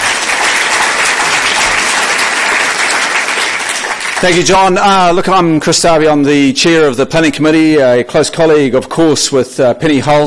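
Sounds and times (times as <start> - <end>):
crowd applause: 0.0 - 4.8
speech: 4.2 - 10.2.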